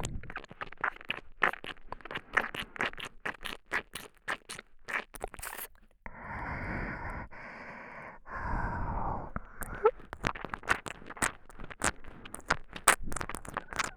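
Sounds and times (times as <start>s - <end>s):
soft tongue licking: 0.0s - 5.9s, 9.3s - 13.9s
sucking sounds: 5.0s - 13.9s.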